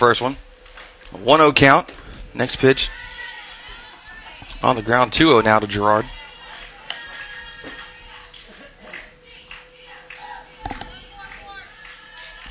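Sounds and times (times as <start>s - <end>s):
speech: 0.0s - 0.5s, 1.1s - 3.1s, 4.6s - 6.2s
team cheering and yelling: 0.0s - 12.4s
sharp claps or taps: 6.3s - 12.4s.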